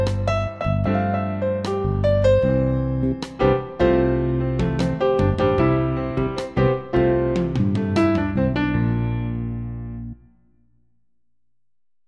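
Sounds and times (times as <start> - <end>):
jazz bass: 0.0 - 10.2
virtual Steinway piano playing: 0.0 - 10.4.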